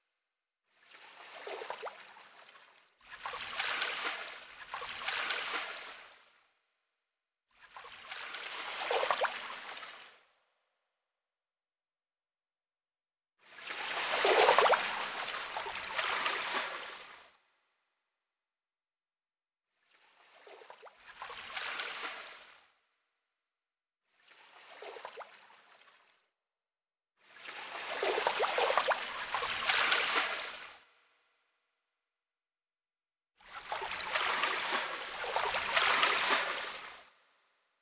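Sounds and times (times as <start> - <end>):
river ambience: 0.9 - 6.1, 8.0 - 10.1, 13.6 - 17.3, 20.1 - 22.6, 24.4 - 25.8, 27.4 - 30.8, 33.5 - 37.2.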